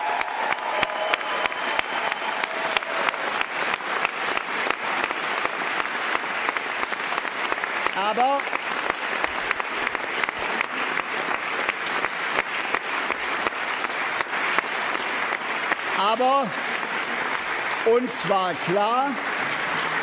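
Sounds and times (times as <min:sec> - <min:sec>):
sustained applause for German Chancellor Angela Merkel: 0:00.0 - 0:20.0
speech: 0:08.1 - 0:08.6, 0:16.2 - 0:16.8, 0:17.8 - 0:19.6.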